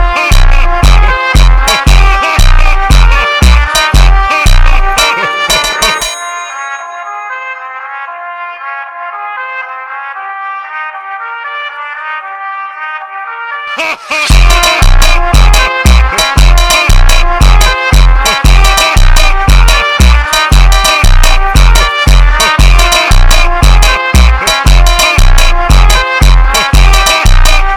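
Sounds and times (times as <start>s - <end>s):
funk music: 0.0s - 6.9s, 13.8s - 27.7s.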